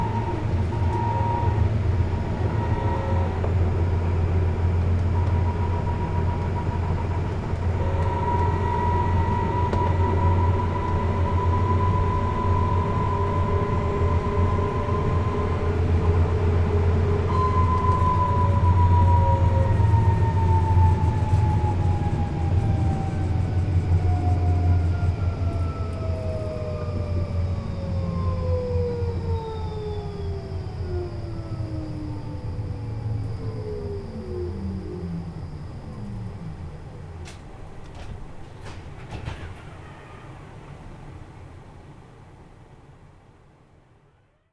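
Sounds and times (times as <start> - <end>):
S car driving: 0.0 - 42.7.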